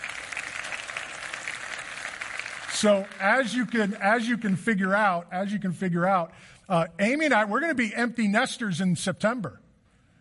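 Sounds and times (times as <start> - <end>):
congregation applauding during a church service: 0.0 - 4.8
speech: 2.8 - 9.6.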